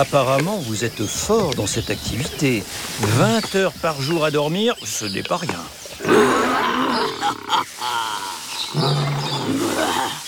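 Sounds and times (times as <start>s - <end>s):
speech: 0.0s - 10.2s
lion roaring: 6.0s - 10.2s.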